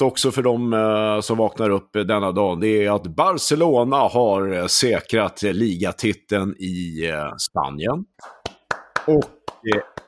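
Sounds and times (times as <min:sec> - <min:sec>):
speech: 0:00.0 - 0:08.4, 0:09.0 - 0:10.0
person clapping hands slowly: 0:08.2 - 0:10.0.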